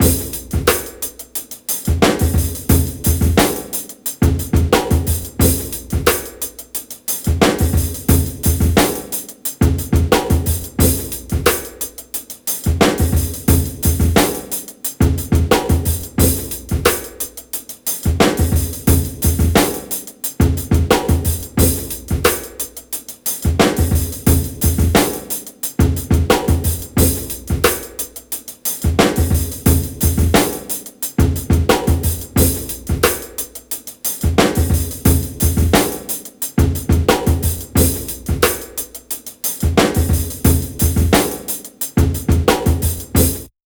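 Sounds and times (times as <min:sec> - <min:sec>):
loose jazz drum breaks: 0:00.0 - 0:43.5.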